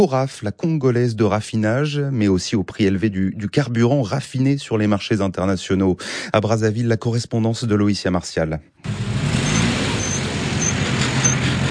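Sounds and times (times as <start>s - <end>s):
speech: 0.0s - 9.2s
cars queuing at a petrol station: 8.8s - 11.6s.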